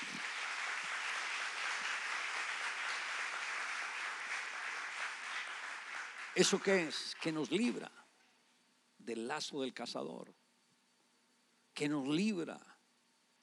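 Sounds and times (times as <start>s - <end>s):
audience applause: 0.0s - 7.7s
speech: 6.4s - 8.0s, 9.0s - 10.4s, 11.8s - 12.7s.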